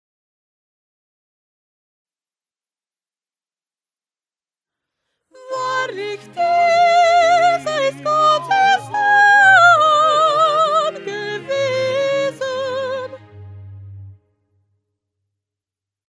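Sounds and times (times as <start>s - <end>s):
soprano singing: 5.3s - 14.2s.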